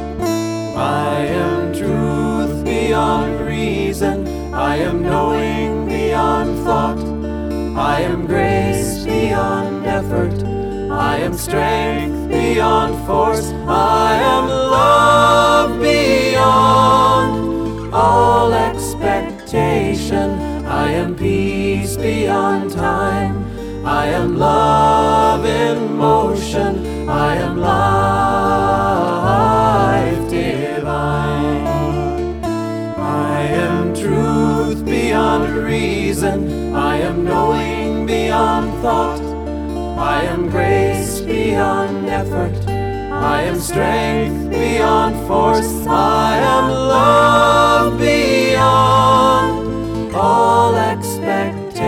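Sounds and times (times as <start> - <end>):
full chorus singing: 0.2 - 51.8.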